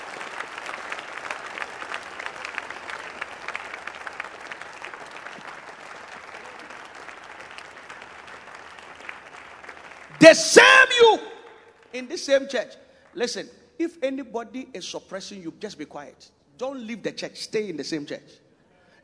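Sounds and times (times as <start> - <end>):
audience clapping in church: 0.0 - 11.9
speech: 10.2 - 11.3, 11.9 - 18.4.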